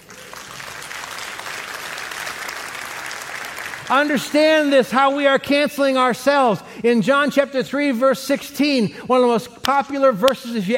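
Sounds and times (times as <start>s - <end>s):
audience applause: 0.0s - 4.2s
speech: 3.9s - 10.7s.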